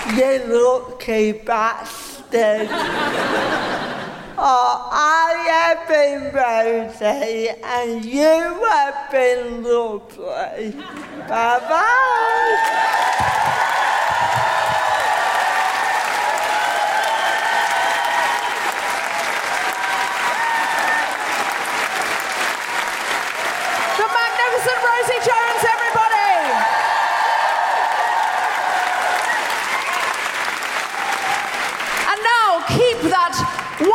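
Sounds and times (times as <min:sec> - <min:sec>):
speech: 0:00.1 - 0:03.8, 0:04.4 - 0:14.4
laughter: 0:02.6 - 0:04.4
crowd applauding: 0:11.9 - 0:33.9
shrill whoops and cheers: 0:12.1 - 0:21.6, 0:23.5 - 0:31.7.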